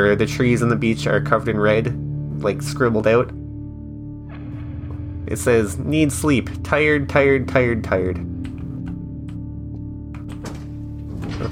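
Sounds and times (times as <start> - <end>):
speech: 0.0 - 3.4, 5.3 - 8.4
heavy security door being unbolted: 10.4 - 11.4.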